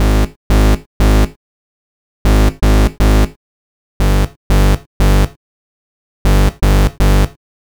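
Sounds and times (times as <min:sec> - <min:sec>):
bass: 0:00.0 - 0:01.4, 0:02.3 - 0:03.3, 0:04.0 - 0:05.3, 0:06.3 - 0:07.3.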